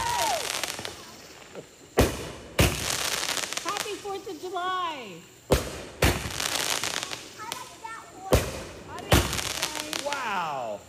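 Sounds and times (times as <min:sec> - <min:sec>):
backyard fireworks in Texas: 0:00.0 - 0:10.8.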